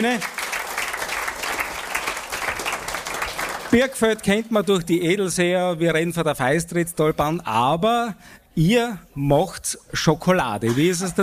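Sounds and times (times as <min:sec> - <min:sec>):
speech: 0:00.0 - 0:00.4, 0:03.7 - 0:11.2
audience clapping: 0:00.0 - 0:04.3.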